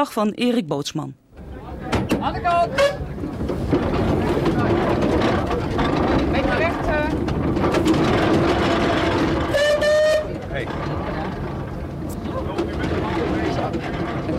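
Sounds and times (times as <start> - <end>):
speech: 0.0 - 1.2, 2.2 - 4.7, 6.4 - 8.6
steamroller engine drone as it is driven along a road: 1.4 - 14.3.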